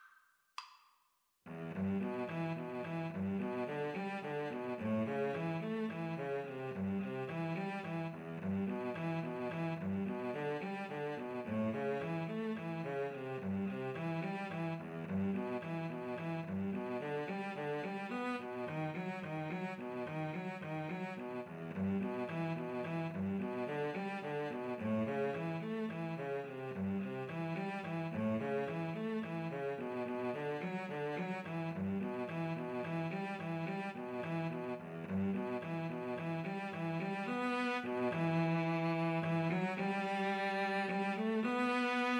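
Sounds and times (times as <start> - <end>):
violin and cello duet: 1.5 - 42.1.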